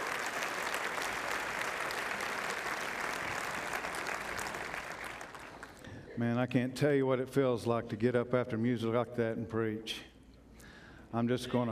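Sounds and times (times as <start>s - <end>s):
audience applause: 0.0s - 5.8s
speech: 6.2s - 10.1s, 11.1s - 11.6s.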